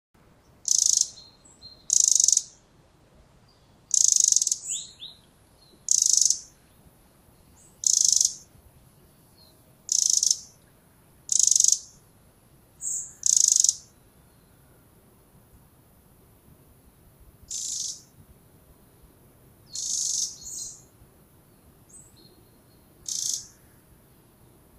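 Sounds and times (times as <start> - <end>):
soft low hiss: 0.2 - 24.7
faint higher chirps: 0.5 - 2.7, 3.5 - 12.1, 12.7 - 14.9, 16.8 - 18.2, 19.7 - 24.7
Eurasian wren calls: 0.6 - 2.6, 3.9 - 6.7, 7.5 - 8.5, 9.3 - 10.6, 11.2 - 12.0, 12.8 - 14.1, 17.5 - 18.2, 19.7 - 21.0, 21.9 - 23.9.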